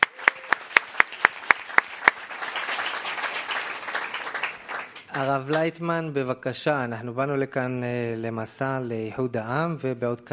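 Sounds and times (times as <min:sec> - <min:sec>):
crowd applauding: 0:00.0 - 0:05.6
speech: 0:05.2 - 0:10.3.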